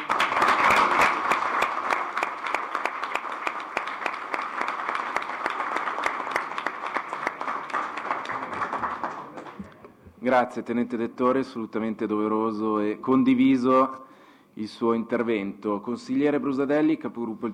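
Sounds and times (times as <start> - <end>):
audience applause: 0.0 - 9.8
speech: 10.2 - 17.5.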